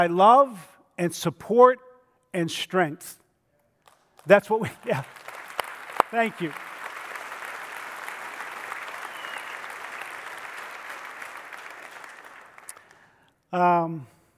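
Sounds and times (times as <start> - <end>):
speech: 0.0 - 3.2, 4.2 - 5.3, 6.1 - 6.7, 13.5 - 14.1
audience applause: 4.7 - 13.1.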